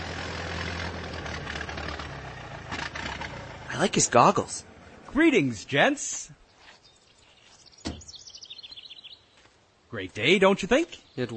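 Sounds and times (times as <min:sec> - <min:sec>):
early motor carriage engine idling roughly: 0:00.0 - 0:05.2
speech: 0:03.8 - 0:06.4, 0:09.9 - 0:11.3.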